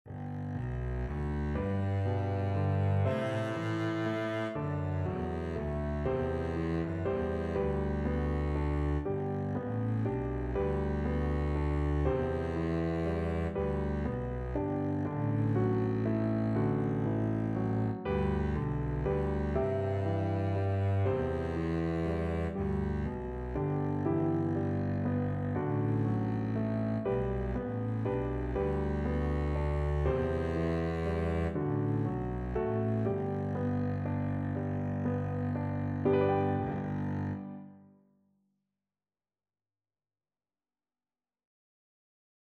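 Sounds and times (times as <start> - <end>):
double bass: 0.1 - 37.5.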